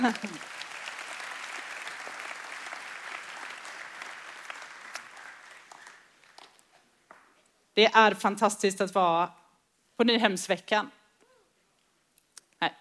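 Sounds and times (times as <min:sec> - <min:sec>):
speech: 0:00.0 - 0:00.6, 0:07.8 - 0:09.4, 0:10.0 - 0:11.0, 0:12.6 - 0:12.7
audience applause: 0:00.0 - 0:06.6.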